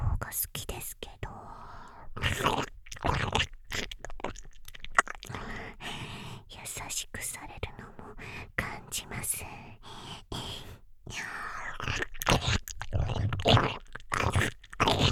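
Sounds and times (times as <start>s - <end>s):
boosted whispering: 0.0s - 2.6s, 5.3s - 11.9s
slow ear licking: 1.7s - 6.3s, 9.8s - 15.0s.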